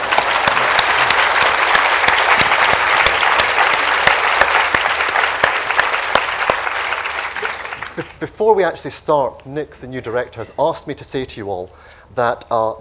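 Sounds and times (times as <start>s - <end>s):
audience applause at the Edinburgh International Book Festival: 0.0s - 8.2s
speech: 8.2s - 12.7s.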